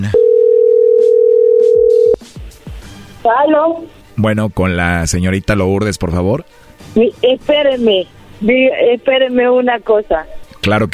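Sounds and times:
telephone ringing tone: 0.1 - 2.2
speech: 3.5 - 10.9.

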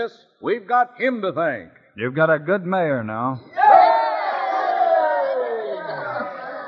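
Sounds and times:
speech: 0.0 - 3.7
crowd of townspeople shouting and cheering: 3.5 - 6.6.

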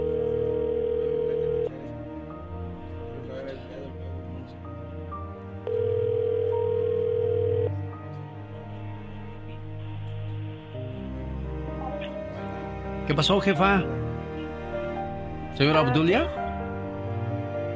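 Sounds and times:
electronic telephone ringback tones: 0.0 - 1.7, 5.7 - 7.8
music: 0.0 - 17.7
speech: 13.1 - 14.0, 15.6 - 16.4.

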